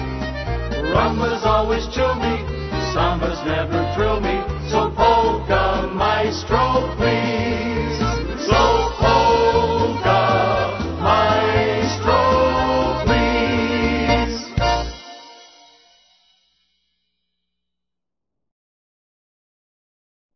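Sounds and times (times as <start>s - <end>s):
polka band playing: 0.0s - 15.6s.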